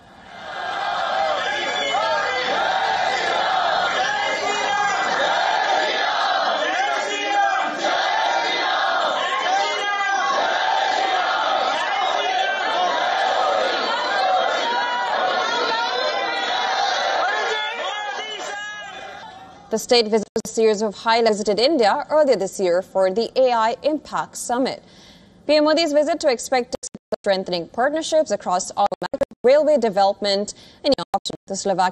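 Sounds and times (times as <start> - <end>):
Indian diaspora crowd cheering and chanting to welcome Prime Minister Modi: 0.2 - 19.6
speech: 19.8 - 28.9, 29.5 - 31.9.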